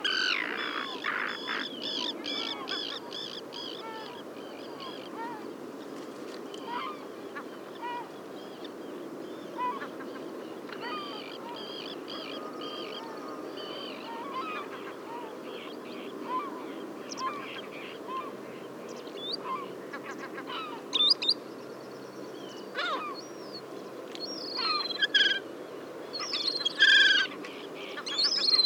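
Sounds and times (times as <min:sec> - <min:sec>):
Caspian gull calls: 0:00.0 - 0:05.5, 0:06.6 - 0:08.1, 0:09.6 - 0:18.4, 0:22.8 - 0:23.2, 0:26.2 - 0:28.6
steady hiss: 0:00.0 - 0:28.6.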